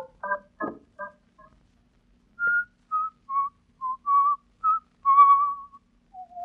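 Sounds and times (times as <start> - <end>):
person whistling a bouncy tune: 2.4 - 5.8.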